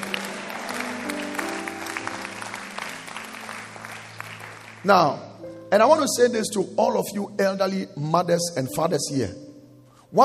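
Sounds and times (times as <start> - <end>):
audience clapping: 0.0 - 5.2
speech: 4.8 - 9.4.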